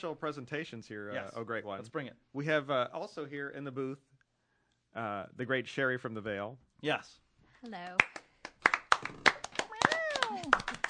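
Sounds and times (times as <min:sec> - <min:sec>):
speech: 0:00.0 - 0:04.1, 0:04.9 - 0:08.2
person clapping hands: 0:08.0 - 0:10.8.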